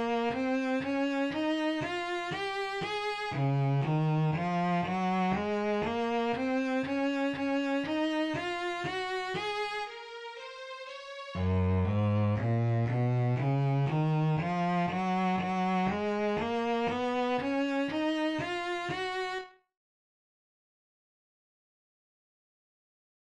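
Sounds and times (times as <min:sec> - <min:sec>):
bass playing two octave scales: 0:00.0 - 0:10.0, 0:11.4 - 0:19.4.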